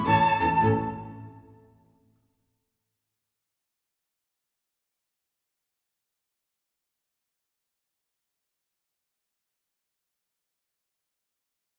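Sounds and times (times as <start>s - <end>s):
galop exam music: 0.0s - 1.6s.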